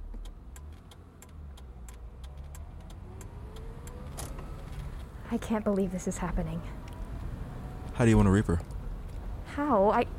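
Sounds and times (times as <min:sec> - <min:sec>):
light ticking clicks: 0:00.0 - 0:05.1
car engine rumble while driving: 0:00.0 - 0:10.1
speech: 0:05.3 - 0:06.9, 0:08.0 - 0:08.7, 0:09.6 - 0:10.1.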